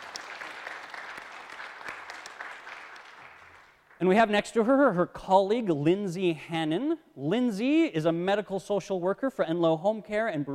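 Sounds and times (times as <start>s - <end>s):
audience applause: 0.0s - 4.0s
speech: 4.0s - 10.5s.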